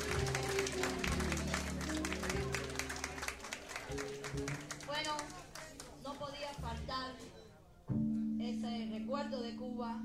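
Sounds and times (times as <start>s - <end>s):
crowd applauding: 0.0s - 6.6s
low sustained music tones: 0.0s - 10.0s
speech: 9.1s - 10.0s.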